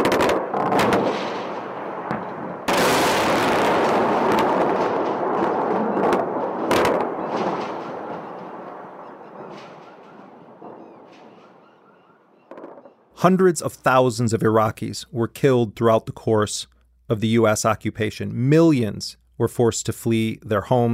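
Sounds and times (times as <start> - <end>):
explosions from US airstrikes on Iraq: 0.0 - 11.7
speech: 13.2 - 20.9.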